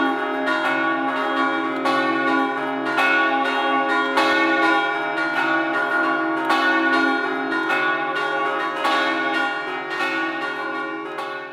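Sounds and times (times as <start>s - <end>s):
church bells in Osoppo: 0.0s - 11.5s.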